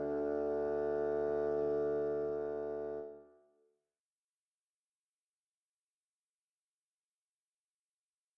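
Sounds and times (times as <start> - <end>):
bassoon duet: 0.0 - 3.2.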